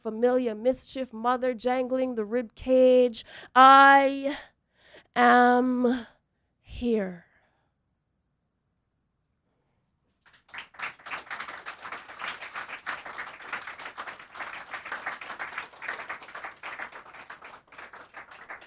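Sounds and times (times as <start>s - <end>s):
speech: 0.0s - 4.5s, 5.2s - 6.2s, 6.8s - 7.3s
audience clapping between poems: 10.3s - 18.6s.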